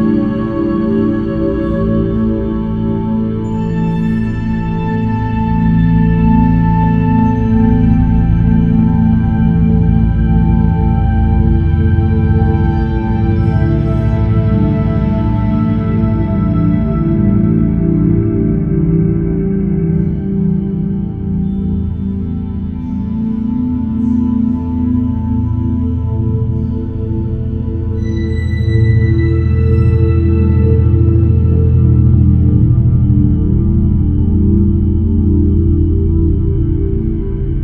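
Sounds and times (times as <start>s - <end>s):
relaxation music: 0.0s - 37.6s.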